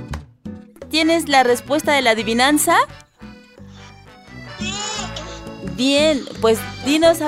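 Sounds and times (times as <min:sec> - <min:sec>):
speech: 0:01.0 - 0:03.1, 0:05.8 - 0:07.2
sheep bleating: 0:03.7 - 0:06.5.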